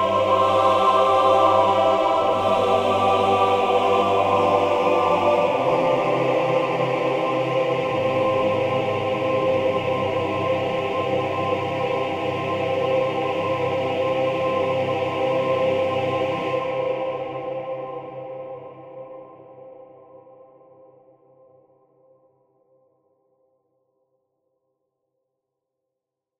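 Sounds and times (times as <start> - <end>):
choir double: 0.0 - 20.1.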